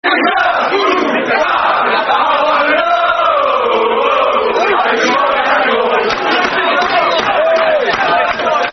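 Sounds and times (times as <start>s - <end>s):
football crowd chanting: 0.0s - 8.7s.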